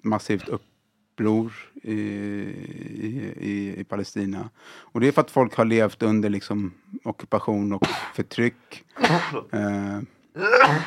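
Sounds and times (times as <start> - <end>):
speech: 0.0 - 10.8
sneeze: 9.0 - 9.4, 10.4 - 10.8.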